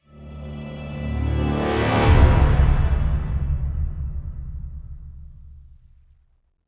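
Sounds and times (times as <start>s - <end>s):
low clear action music: 0.0s - 6.1s.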